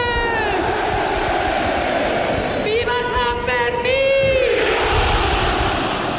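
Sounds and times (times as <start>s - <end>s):
chanted shouts: 0.0s - 3.1s, 4.2s - 6.1s
dense crowd roaring and cheering: 0.0s - 3.1s, 4.2s - 6.1s.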